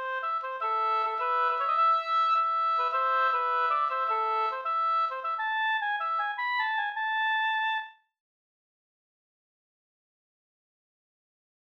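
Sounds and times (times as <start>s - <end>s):
pols folk dance tune: 0.0s - 7.9s.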